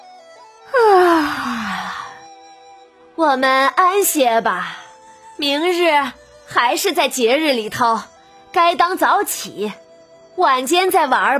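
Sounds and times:
person yawning: 0:00.7 - 0:02.2
speech: 0:03.2 - 0:04.8, 0:05.4 - 0:09.8, 0:10.4 - 0:11.3.

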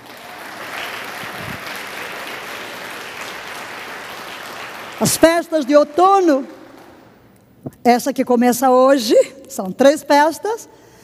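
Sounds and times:
audience applauding loudly: 0:00.0 - 0:07.2
speech: 0:05.0 - 0:06.6, 0:07.8 - 0:10.9.

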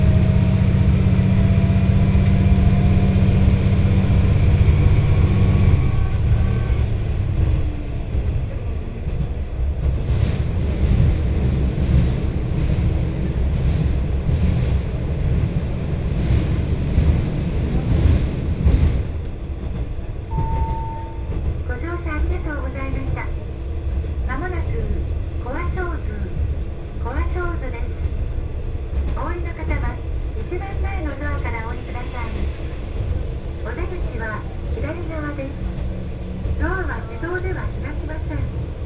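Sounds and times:
train rumbling on the Etsumi-hoku Line: 0:00.0 - 0:38.8
chime: 0:20.3 - 0:21.3.

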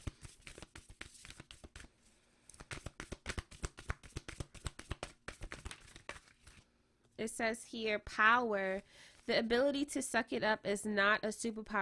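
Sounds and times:
card handling as a self-care card is drawn from a deck: 0:00.0 - 0:01.9, 0:02.5 - 0:06.6
speech: 0:07.2 - 0:11.7.

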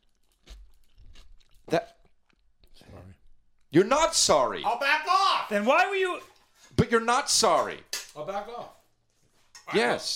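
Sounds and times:
chewing and crunching cucumber salad with onion: 0:00.0 - 0:03.7
speech: 0:03.7 - 0:06.3, 0:06.9 - 0:08.8, 0:09.7 - 0:10.1.

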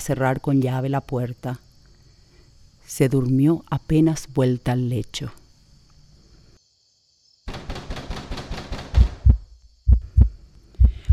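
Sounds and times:
speech: 0:00.0 - 0:01.6, 0:02.9 - 0:05.4
pounding heartbeat sound effect: 0:08.9 - 0:11.1.

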